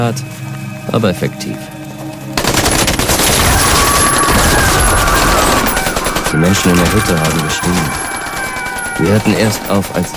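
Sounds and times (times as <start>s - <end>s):
speech: 0.0s - 1.8s, 6.3s - 8.2s, 9.0s - 10.1s
heavy automatic gunfire shooting into a mud hut: 2.4s - 9.8s.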